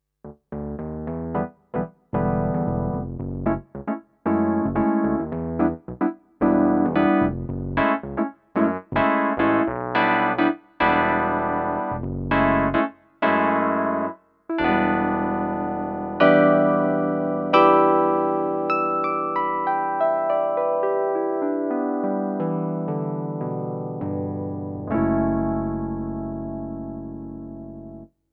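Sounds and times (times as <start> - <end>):
electric piano: 0.5 - 28.1.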